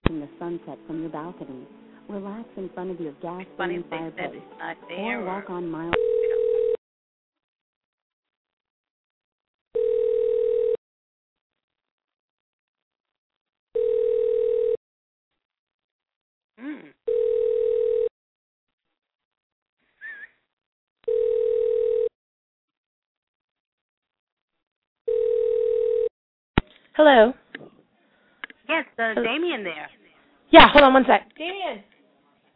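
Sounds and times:
speech: 0.2 - 6.2, 27.0 - 27.4, 29.0 - 31.9
telephone ring tone: 3.5 - 6.8, 9.8 - 10.8, 13.8 - 14.8, 17.1 - 18.1, 21.1 - 22.1, 25.1 - 26.1.

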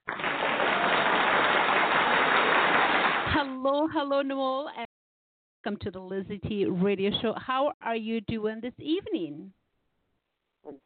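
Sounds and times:
applause: 0.0 - 3.6
speech: 3.7 - 4.9, 5.6 - 9.6, 10.6 - 10.8.

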